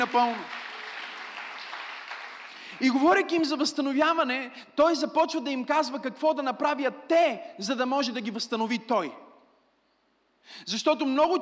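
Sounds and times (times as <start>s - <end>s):
speech: 0.0s - 0.6s, 2.8s - 9.2s, 10.4s - 11.4s
audience applause: 0.0s - 2.8s.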